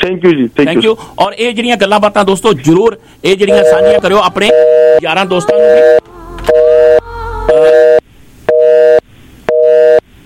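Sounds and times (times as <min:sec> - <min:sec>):
speech: 0:00.0 - 0:06.1
telephone busy tone after a dropped call: 0:03.5 - 0:10.0.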